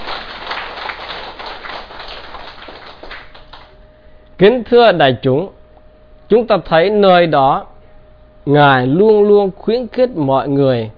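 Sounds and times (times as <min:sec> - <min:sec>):
audience applause: 0:00.0 - 0:03.8
speech: 0:04.4 - 0:05.6, 0:06.3 - 0:07.7, 0:08.4 - 0:10.9.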